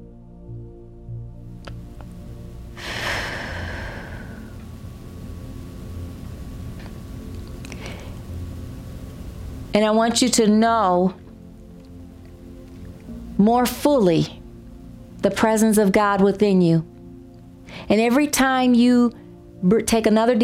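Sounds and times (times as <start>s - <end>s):
steady low hum: 0.0s - 20.3s
deep breath during a guided spiritual meditation: 2.8s - 4.6s, 7.7s - 8.3s
speech: 9.8s - 11.2s, 13.4s - 14.4s, 15.2s - 16.9s, 17.7s - 20.4s.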